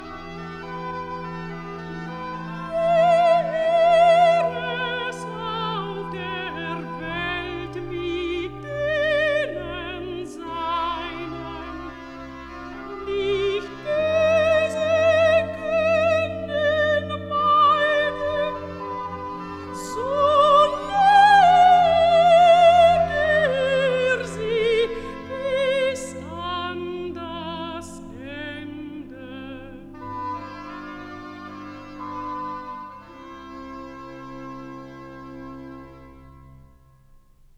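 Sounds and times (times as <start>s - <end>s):
soprano singing recitative: 2.4s - 30.1s.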